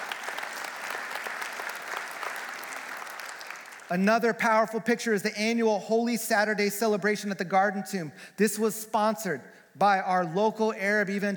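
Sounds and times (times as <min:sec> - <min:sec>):
audience clapping: 0:00.0 - 0:04.0
speech: 0:03.9 - 0:11.3.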